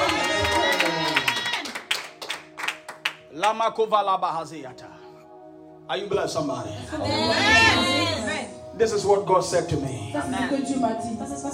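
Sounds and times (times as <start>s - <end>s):
audience clapping hands: 0.0s - 3.6s
speech: 3.4s - 4.9s, 5.9s - 8.2s, 8.8s - 11.5s.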